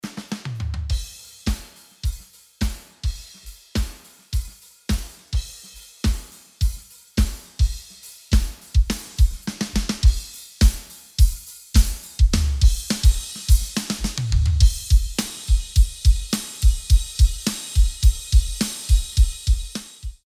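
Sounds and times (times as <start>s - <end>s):
drums: 0.0s - 20.2s.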